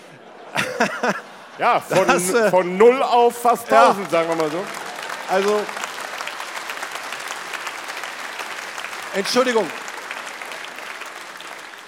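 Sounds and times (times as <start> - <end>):
laughter: 0.0 - 5.7
speech: 0.8 - 5.8, 9.2 - 9.8
audience applause: 3.6 - 11.8.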